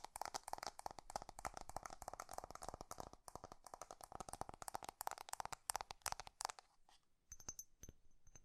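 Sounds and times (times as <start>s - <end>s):
fast crisp tapping: 0.0s - 6.7s.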